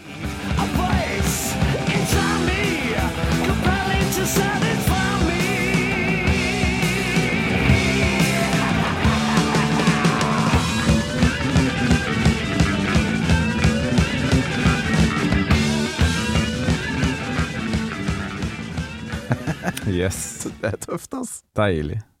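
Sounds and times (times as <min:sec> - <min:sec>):
loud, dense rock song with driving drums and guitars: 0:00.0 - 0:19.9
laughter: 0:07.0 - 0:11.6, 0:19.1 - 0:21.0
speech: 0:20.1 - 0:22.1.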